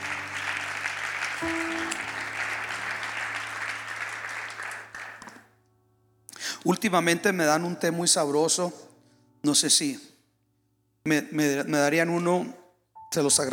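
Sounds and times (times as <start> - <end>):
loud audience applause: 0.0 - 5.5
speech: 6.6 - 10.1, 11.0 - 13.5.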